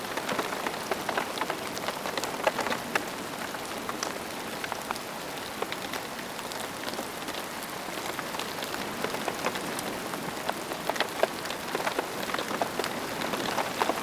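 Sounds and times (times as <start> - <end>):
rain while camping: 0.0 - 14.0.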